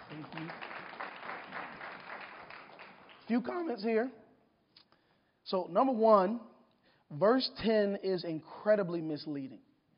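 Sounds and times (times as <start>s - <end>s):
audience clapping: 0.0s - 3.8s
speech: 0.3s - 0.7s, 3.3s - 4.2s, 5.5s - 6.5s, 7.1s - 9.7s.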